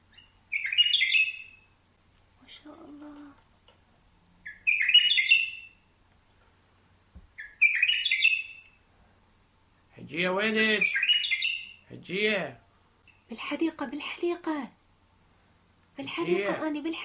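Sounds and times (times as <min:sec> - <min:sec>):
bulbul bird whistling song: 0:00.0 - 0:01.8, 0:04.4 - 0:05.9, 0:07.4 - 0:08.8, 0:10.7 - 0:11.9
speech: 0:10.1 - 0:11.0, 0:12.0 - 0:12.6, 0:13.3 - 0:14.8, 0:16.0 - 0:17.0.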